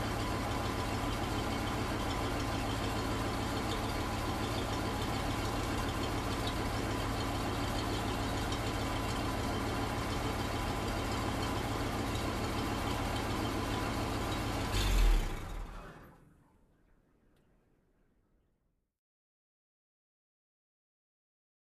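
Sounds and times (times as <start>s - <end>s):
fire truck engine starting and idling: 0.0s - 17.0s.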